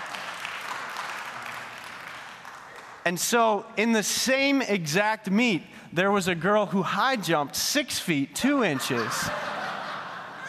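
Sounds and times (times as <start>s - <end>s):
audience applause: 0.0s - 3.0s
speech: 3.1s - 9.5s
laughter: 8.4s - 10.4s.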